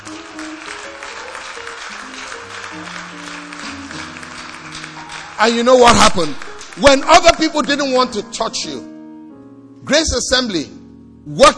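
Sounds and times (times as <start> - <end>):
audience clapping: 0.0 - 8.2
speech: 5.4 - 8.9, 9.9 - 11.5.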